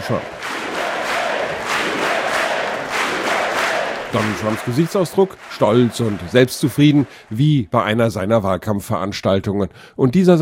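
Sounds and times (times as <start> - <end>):
Congress crowd cheering and shouting: 0.0 - 8.3
speech: 0.1 - 0.4, 4.1 - 10.3.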